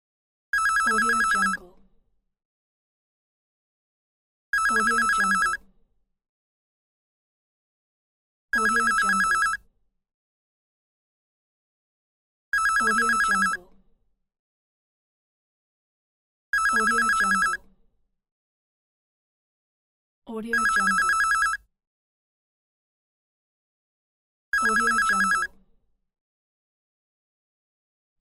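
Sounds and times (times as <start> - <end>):
telephone bell ringing: 0.6 - 1.6, 4.6 - 5.6, 8.6 - 9.6, 12.6 - 13.6, 16.6 - 17.6, 20.5 - 21.6, 24.6 - 25.5.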